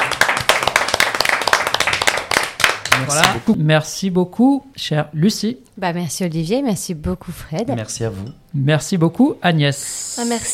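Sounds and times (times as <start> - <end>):
audience applause: 0.0 - 3.4
speech: 3.0 - 10.5.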